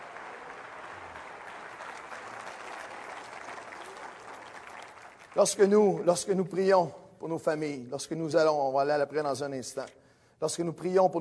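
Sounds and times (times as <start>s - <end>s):
audience applauding: 0.0s - 6.1s
speech: 5.4s - 11.1s.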